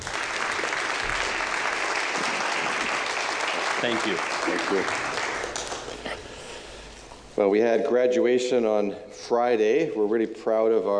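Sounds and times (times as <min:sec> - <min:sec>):
audience applauding to welcome a speaker: 0:00.0 - 0:06.4
speech: 0:03.8 - 0:05.2, 0:07.4 - 0:10.9.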